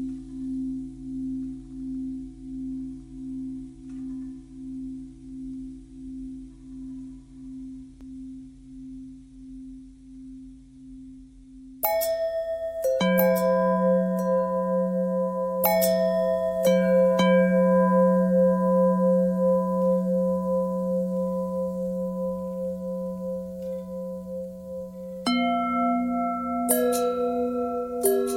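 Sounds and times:
long simple bell ringing: 11.8 - 28.3.

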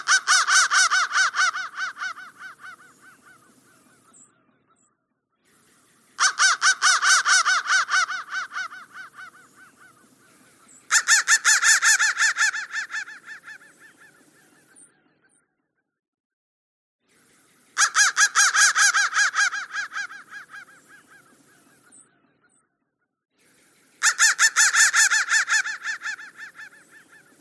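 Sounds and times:
crow cawing: 0.0 - 4.1, 6.2 - 14.4, 17.8 - 21.6, 24.0 - 27.3.

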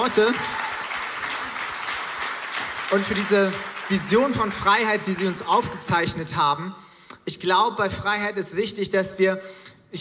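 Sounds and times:
speech: 0.0 - 0.6, 2.9 - 10.0
audience applause: 0.0 - 5.4.

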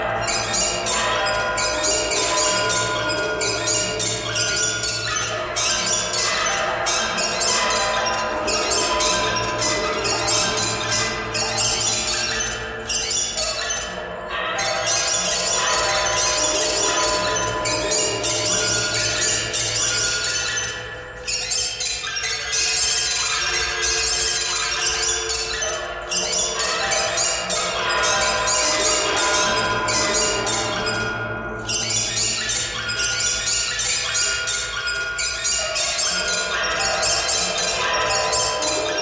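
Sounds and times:
birds: 0.1 - 39.0.

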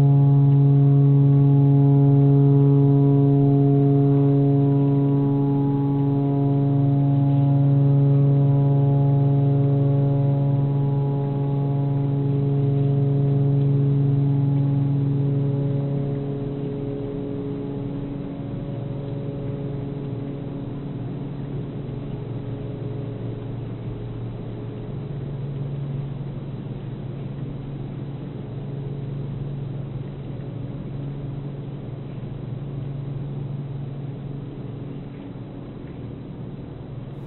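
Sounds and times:
tornado siren: 0.0 - 26.0.

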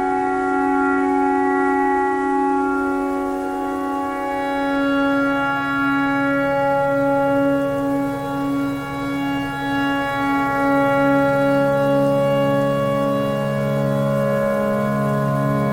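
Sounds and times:
clarinet pentatonic melody: 0.0 - 15.7
tornado siren: 0.0 - 15.7.

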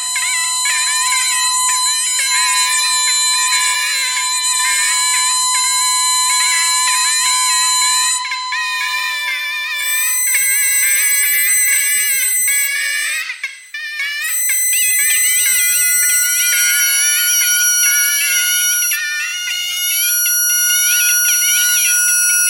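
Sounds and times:
radio thread noise: 0.0 - 12.6
bagpipe: 0.0 - 22.4.

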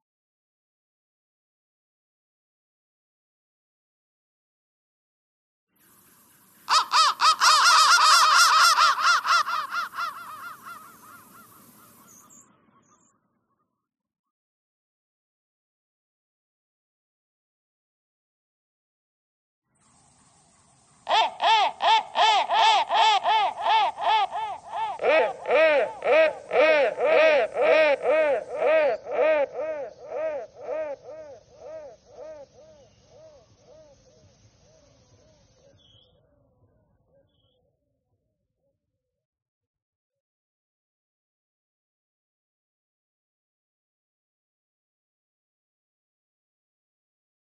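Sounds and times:
crow: 6.7 - 13.7, 21.1 - 34.0.

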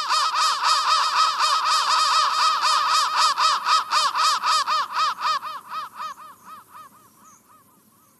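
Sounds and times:
crow cawing: 0.0 - 8.1.

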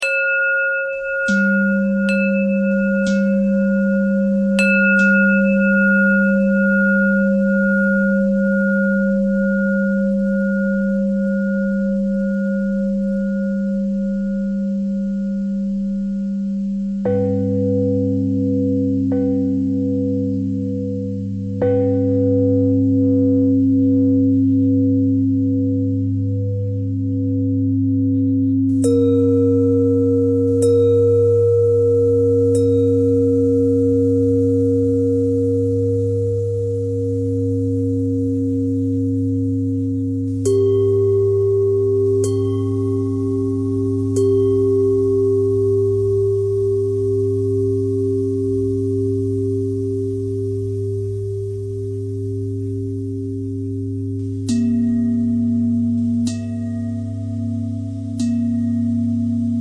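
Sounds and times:
pentatonic bell melody: 0.0 - 59.5.

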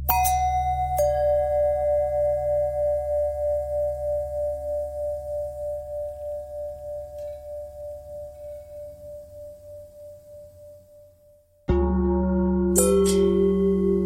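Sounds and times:
long pentatonic bell tones: 0.1 - 11.0, 11.7 - 14.0.

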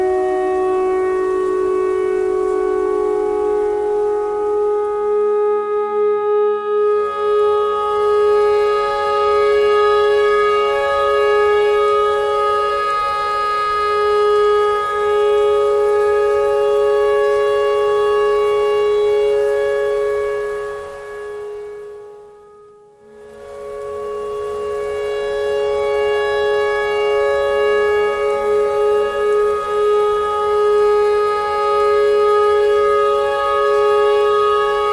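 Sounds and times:
clarinet notes imitating a tornado siren: 0.0 - 34.9.

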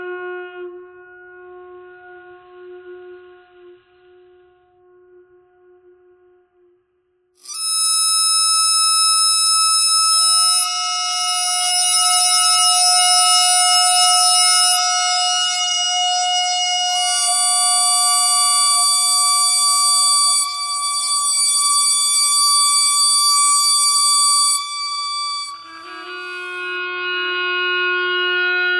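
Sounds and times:
bagpipe thread noise: 7.4 - 28.7.

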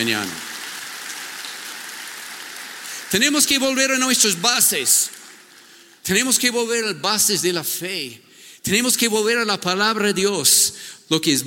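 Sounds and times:
speech: 0.0 - 0.5, 3.1 - 5.2, 6.0 - 11.4
audience applause: 0.0 - 5.8.

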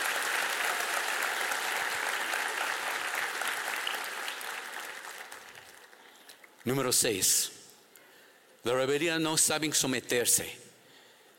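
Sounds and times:
audience applause: 0.0 - 6.6
speech: 6.6 - 7.6, 8.6 - 10.6.

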